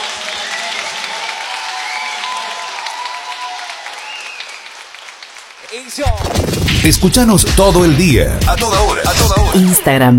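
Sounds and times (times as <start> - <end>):
audience applause: 0.0 - 6.7
speech: 5.8 - 10.1.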